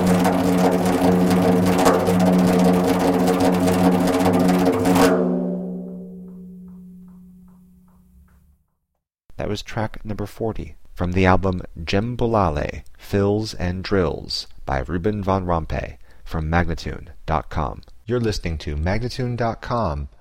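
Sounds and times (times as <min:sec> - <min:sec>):
fast magical spin sounds: 0:00.0 - 0:05.3
djembe drumming: 0:00.0 - 0:07.7
person speaking: 0:09.3 - 0:20.1.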